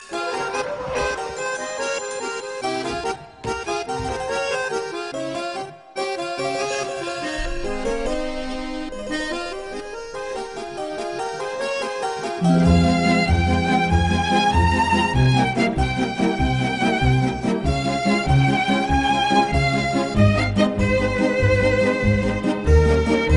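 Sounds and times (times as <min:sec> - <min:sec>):
background music: 0:00.0 - 0:23.3.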